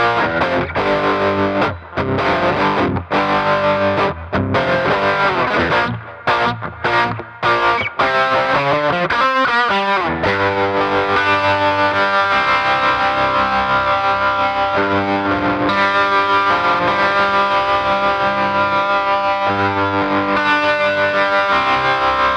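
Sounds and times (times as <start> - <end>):
choppy rock electric guitar with tremolo pedal through a tube amplifier: 0.0 - 22.3.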